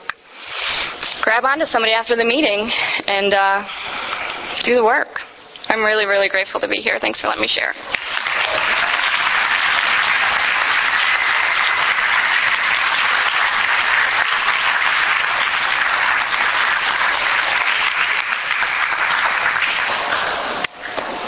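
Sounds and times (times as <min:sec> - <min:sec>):
speech: 0:01.3 - 0:03.8, 0:04.6 - 0:08.1
audience applause: 0:07.9 - 0:21.2.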